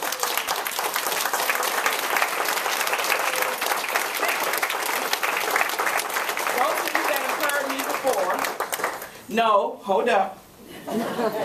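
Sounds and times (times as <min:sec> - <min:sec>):
audience applause: 0:00.0 - 0:09.2
speech: 0:09.3 - 0:11.4
laughter: 0:10.7 - 0:11.4.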